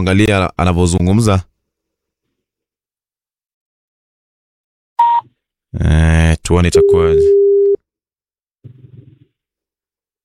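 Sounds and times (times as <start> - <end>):
speech: 0.0 - 1.5, 5.7 - 7.4
phone line tone after the caller hung up: 5.0 - 5.2, 6.8 - 7.8.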